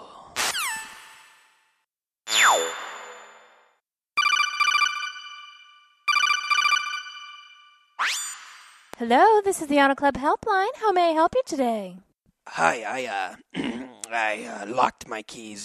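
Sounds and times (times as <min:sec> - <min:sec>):
electronic telephone ringing: 0:04.2 - 0:07.8
speech: 0:09.0 - 0:15.6.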